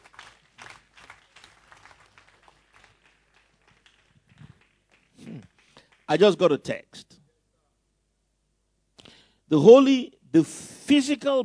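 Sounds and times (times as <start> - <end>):
audience clapping: 0.0 - 6.7
speech: 6.1 - 7.0, 9.5 - 11.4.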